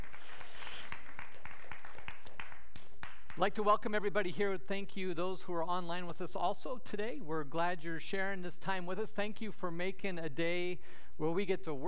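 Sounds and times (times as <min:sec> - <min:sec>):
audience clapping: 0:00.0 - 0:03.7
speech: 0:03.4 - 0:11.8.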